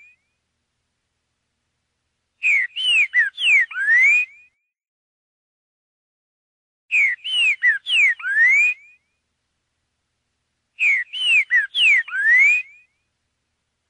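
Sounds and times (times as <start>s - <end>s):
green-winged saltator song: 0.0s - 0.4s, 2.4s - 4.7s, 6.9s - 9.2s, 10.8s - 13.1s.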